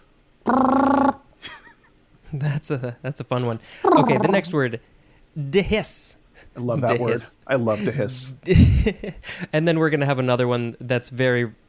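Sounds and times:
speech: 0:00.4 - 0:00.7, 0:02.6 - 0:11.6
voice imitating a trumpet: 0:00.5 - 0:01.3, 0:03.8 - 0:04.5
laughter: 0:01.4 - 0:01.8, 0:03.9 - 0:04.6, 0:06.8 - 0:09.5.

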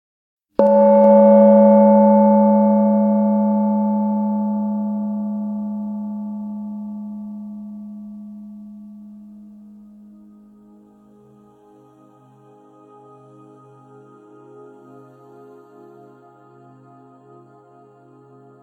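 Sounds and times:
gong stroke ringing: 0:00.6 - 0:05.0.

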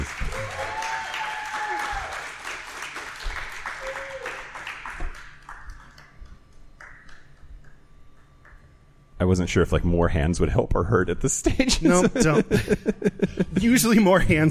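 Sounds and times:
voices rising over clapping: 0:00.0 - 0:06.1
audience applause welcoming a guest onto a live show: 0:00.0 - 0:07.4
speech: 0:09.2 - 0:14.4
laughter: 0:11.5 - 0:13.9.

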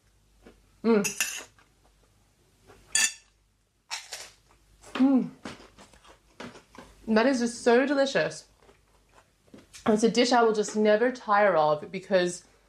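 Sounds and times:
speech: 0:00.8 - 0:01.3, 0:05.0 - 0:05.4, 0:07.1 - 0:08.5, 0:09.8 - 0:12.5
fork and spoon clinking and scraping on a plate of nasi goreng: 0:03.0 - 0:03.3.

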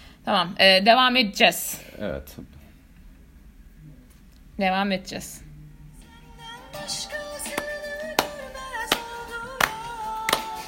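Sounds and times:
speech: 0:00.2 - 0:02.6, 0:04.6 - 0:05.4
audience clapping: 0:07.4 - 0:10.6.

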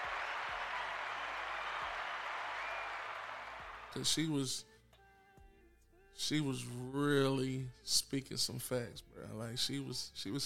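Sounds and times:
hand clapping: 0:00.0 - 0:04.0
speech: 0:03.9 - 0:04.7, 0:06.2 - 0:10.4.

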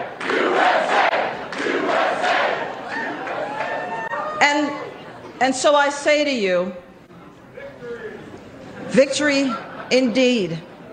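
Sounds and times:
crowd chanting at a political rally: 0:00.0 - 0:03.8
speech: 0:05.4 - 0:06.8, 0:08.9 - 0:10.7.

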